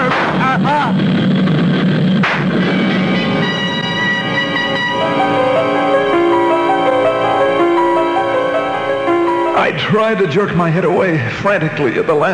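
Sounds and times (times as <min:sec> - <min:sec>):
gunshot: 0:00.0 - 0:00.6, 0:02.1 - 0:03.0
loud steady droning roar of layered engine-like tones: 0:00.0 - 0:10.6
speech: 0:09.9 - 0:12.3.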